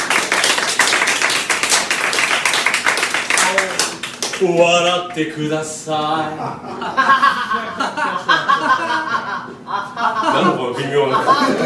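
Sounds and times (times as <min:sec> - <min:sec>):
audience clapping: 0:00.0 - 0:05.0
speech: 0:04.4 - 0:08.2, 0:10.3 - 0:11.6
laughter: 0:06.3 - 0:11.6.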